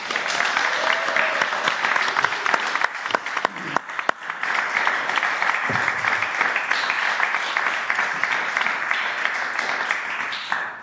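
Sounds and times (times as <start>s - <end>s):
audience applause: 0.0s - 10.8s.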